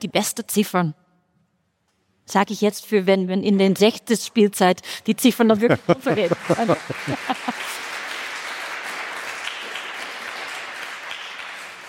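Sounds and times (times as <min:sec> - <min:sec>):
speech: 0:00.0 - 0:01.0, 0:02.3 - 0:07.9
laughter: 0:05.5 - 0:07.9
audience applause: 0:06.0 - 0:11.8.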